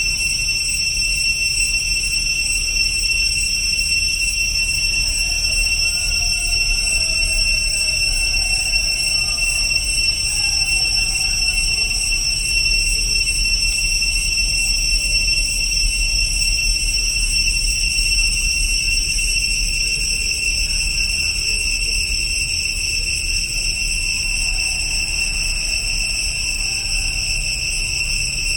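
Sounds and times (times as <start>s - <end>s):
cicada chorus in Cambodia: 0.0s - 28.5s.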